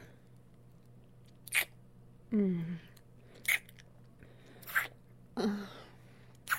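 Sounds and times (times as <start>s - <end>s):
wet noises: 1.5s - 1.7s, 3.4s - 3.9s, 4.6s - 5.0s.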